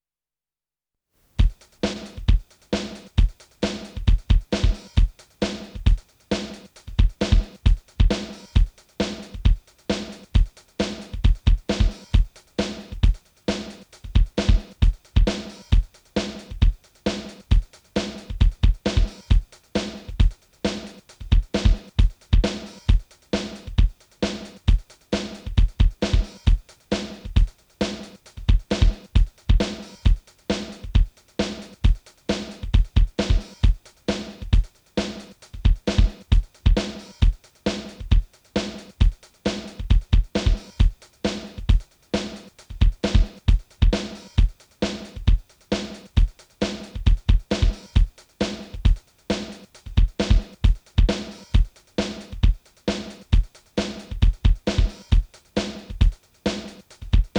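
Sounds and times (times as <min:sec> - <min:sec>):
drums: 0:01.3 - 0:57.3.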